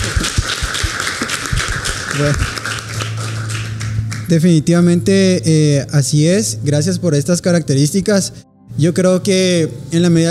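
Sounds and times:
audience applause: 0.0s - 4.3s
speech: 2.2s - 2.6s, 4.3s - 10.3s.

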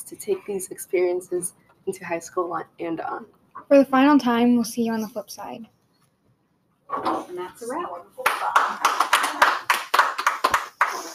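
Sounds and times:
speech: 0.0s - 5.8s, 6.9s - 9.0s
person clapping: 8.2s - 11.1s.

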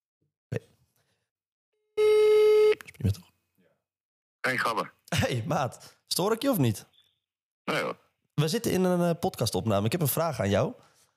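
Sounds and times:
phone call ringing tone: 2.0s - 2.8s
speech: 4.5s - 6.9s, 7.7s - 10.9s.

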